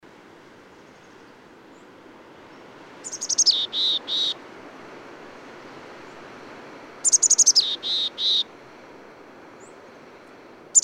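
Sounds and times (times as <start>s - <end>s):
bird song phrase of high descending trill and buzzy notes: 3.0s - 4.4s, 7.0s - 8.5s.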